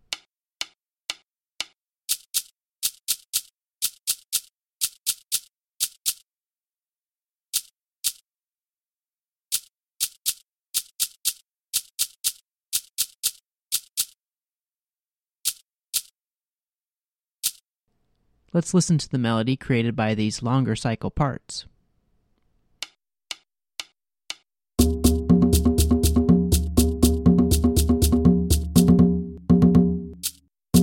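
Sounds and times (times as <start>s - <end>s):
shaker rhythm pattern: 2.1s - 6.2s, 9.5s - 14.2s, 24.8s - 30.8s
speech: 18.5s - 21.7s.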